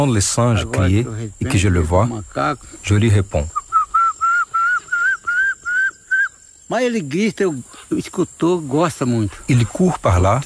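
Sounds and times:
speech: 0:00.0 - 0:03.6, 0:06.7 - 0:10.4
whistled imitation of a little tinamou call: 0:03.5 - 0:06.4.

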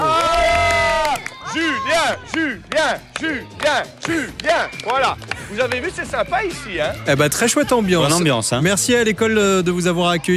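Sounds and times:
applause for children: 0:00.0 - 0:01.6, 0:02.2 - 0:06.0
speech: 0:01.6 - 0:10.3.

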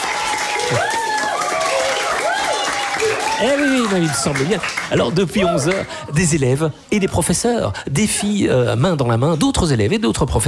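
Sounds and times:
children's audience applauding: 0:00.0 - 0:06.1
speech: 0:03.4 - 0:10.4.

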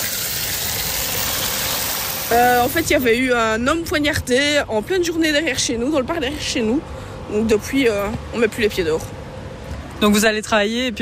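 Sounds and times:
water gushing from a street fountain on a hot day: 0:00.0 - 0:03.0
speech: 0:02.3 - 0:09.2, 0:10.0 - 0:11.0.

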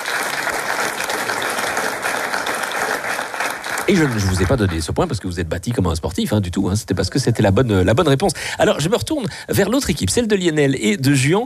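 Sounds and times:
applause: 0:00.0 - 0:05.2
speech: 0:03.9 - 0:11.4.

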